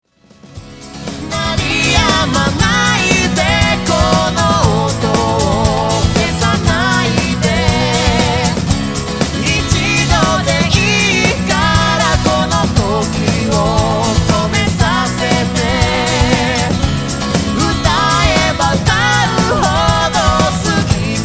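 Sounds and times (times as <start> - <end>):
rhythm sample: 0.6 - 21.2.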